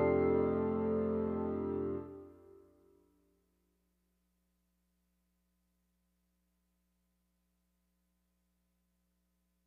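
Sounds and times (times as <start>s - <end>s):
piano: 0.0s - 2.8s.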